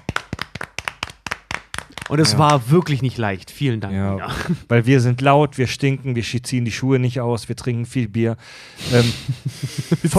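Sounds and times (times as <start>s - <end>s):
hands clapping applause: 0.0s - 2.9s
speech: 2.1s - 10.1s
laughter: 9.0s - 10.1s.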